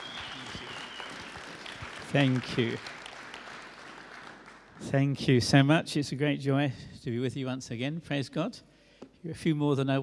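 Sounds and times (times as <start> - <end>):
audience applause: 0.0 - 4.8
speech: 2.1 - 3.0, 4.8 - 10.0.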